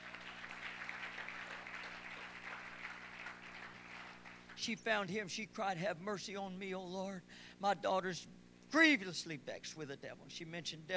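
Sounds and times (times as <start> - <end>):
audience clapping hands: 0.0 - 4.6
speech: 4.6 - 10.9.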